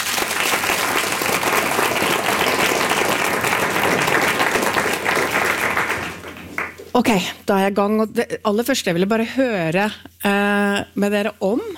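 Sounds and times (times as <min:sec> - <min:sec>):
audience applause for the panel: 0:00.0 - 0:06.9
speech: 0:07.0 - 0:11.7.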